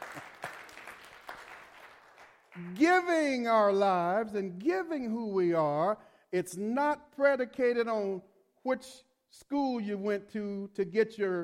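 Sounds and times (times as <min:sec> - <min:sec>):
audience clapping hands: 0:00.0 - 0:03.1
speech: 0:02.6 - 0:11.4.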